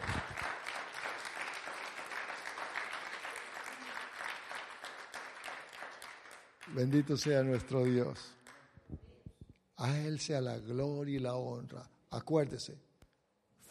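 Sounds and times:
audience applauding: 0.0s - 8.7s
speech: 6.7s - 8.4s, 9.8s - 12.9s.

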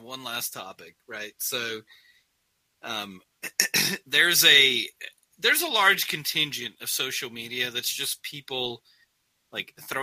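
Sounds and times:
speech: 0.1s - 2.1s, 2.8s - 8.9s, 9.5s - 10.0s
throat clearing: 3.4s - 4.1s.

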